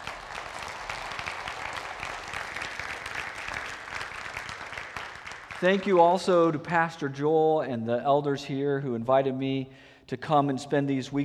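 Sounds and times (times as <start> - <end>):
audience applause: 0.0 - 6.2
speech: 5.6 - 11.2.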